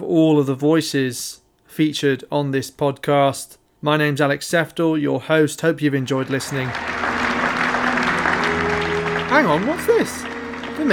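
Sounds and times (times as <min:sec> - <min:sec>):
speech: 0:00.1 - 0:07.0, 0:09.4 - 0:10.9
crowd applause at awards evening: 0:06.1 - 0:10.9.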